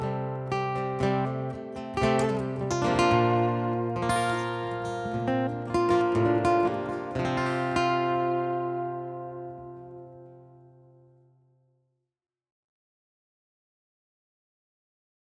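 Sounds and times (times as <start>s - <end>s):
Martin guitar through an Anthem pickup: 0.0s - 11.0s.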